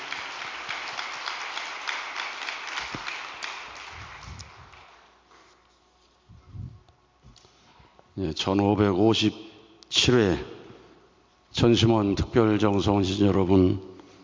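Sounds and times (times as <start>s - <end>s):
audience applause: 0.0s - 5.0s
speech: 8.2s - 10.5s, 11.6s - 13.9s.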